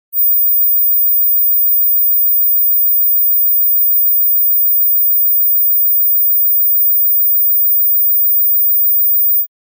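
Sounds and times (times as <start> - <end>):
teen buzz ringtone: 0.1 - 9.5.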